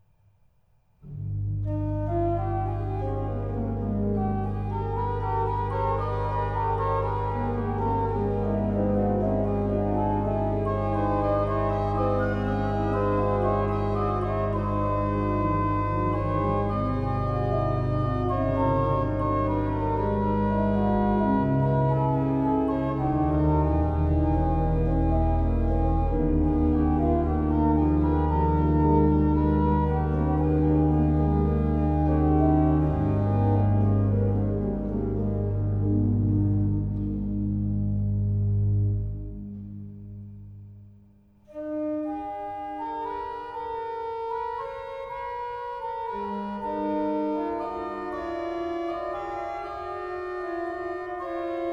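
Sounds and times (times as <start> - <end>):
organ prelude and fugue: 1.0 - 51.7.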